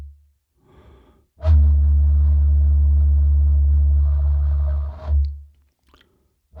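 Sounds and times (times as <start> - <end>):
Hue Puruhau Nui gourd taonga puoro: 1.5 - 5.3.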